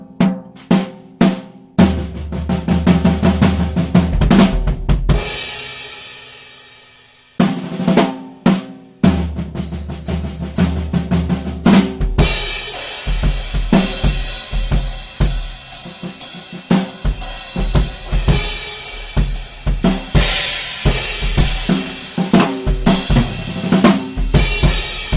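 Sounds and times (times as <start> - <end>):
drums recorded binaurally with Roland CS 10 EM mics: 0.0 - 25.1.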